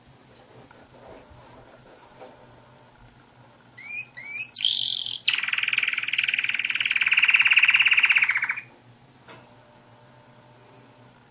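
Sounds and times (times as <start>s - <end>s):
canary song: 3.8s - 8.7s.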